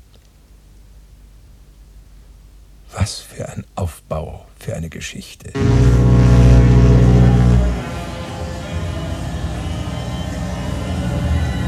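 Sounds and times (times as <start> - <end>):
speech: 2.9 - 6.2
ship engine rumble approaching a dock: 5.6 - 9.8
ship horn blast approaching a dock: 5.6 - 11.6.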